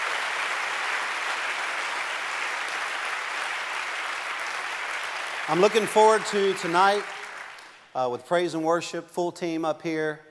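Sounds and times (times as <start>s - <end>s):
crowd clapping hands: 0.0s - 7.9s
speech: 5.5s - 7.2s, 8.0s - 10.2s.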